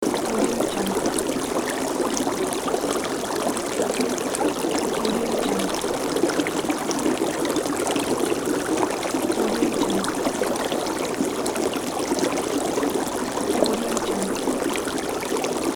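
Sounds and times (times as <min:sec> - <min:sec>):
boiling water: 0:00.0 - 0:15.7.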